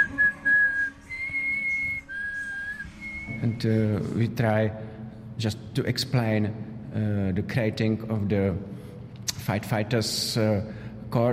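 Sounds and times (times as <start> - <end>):
signal whistle for a steam fire engine: 0.0 - 3.6
speech: 3.4 - 4.8, 5.4 - 8.7, 9.4 - 11.3.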